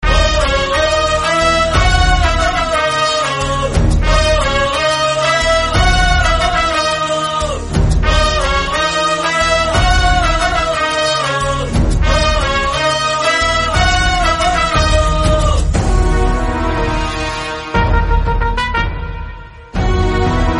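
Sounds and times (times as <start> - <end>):
Marathi instrumental background music: 0.0 - 20.5.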